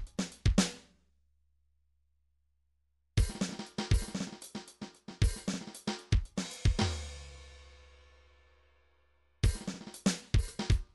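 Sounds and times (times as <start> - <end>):
MIDI drums: 0.0 - 0.9, 3.2 - 7.6, 9.4 - 10.9.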